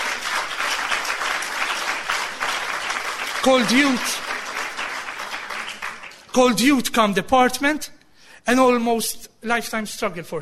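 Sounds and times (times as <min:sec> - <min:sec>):
audience applause: 0:00.0 - 0:06.4
speech: 0:03.4 - 0:04.2, 0:06.4 - 0:10.4.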